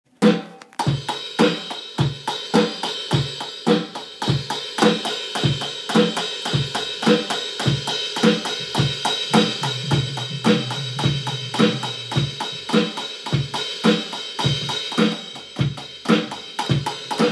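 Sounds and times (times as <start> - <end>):
live drumming: 0.2 - 17.3.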